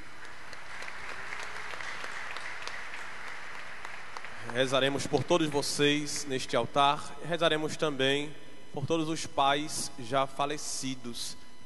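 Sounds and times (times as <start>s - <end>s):
audience applauding fathers: 0.0s - 6.3s
speech: 4.6s - 11.4s.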